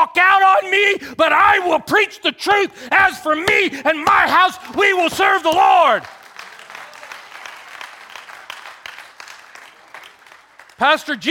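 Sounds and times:
speech: 0.2 - 6.2, 10.8 - 11.3
audience clapping: 3.4 - 11.3.

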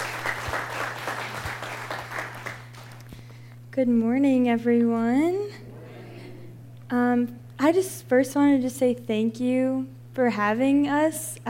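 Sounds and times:
audience applause welcoming a speaker: 0.0 - 3.0
speech: 3.8 - 5.6, 6.9 - 11.4.

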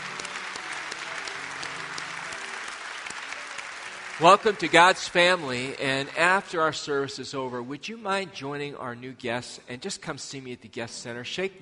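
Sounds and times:
church congregation applauding during a service: 0.0 - 6.7
speech: 4.2 - 11.6.

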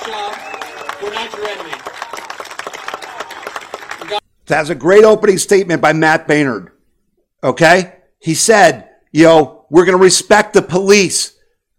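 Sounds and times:
crowd round of applause: 0.0 - 4.2
speech: 0.1 - 1.9, 4.1 - 6.7, 7.4 - 11.4.

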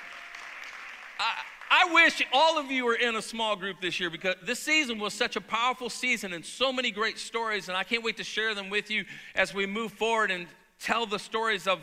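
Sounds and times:
audience clapping: 0.0 - 2.6
speech: 1.2 - 11.8.

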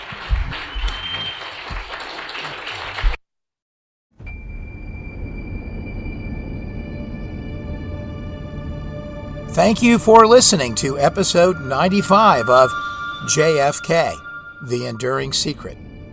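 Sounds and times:
audience round of applause: 0.0 - 3.2
speech: 9.6 - 15.9.

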